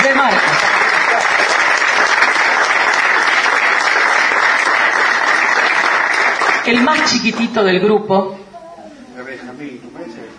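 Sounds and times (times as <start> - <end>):
audience applause: 0.0 - 7.2
speech: 6.7 - 8.4, 9.4 - 10.3.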